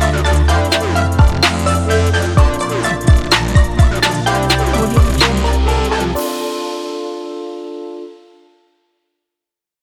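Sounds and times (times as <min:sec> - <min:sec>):
dream trap drum kit: 0:00.7 - 0:06.0.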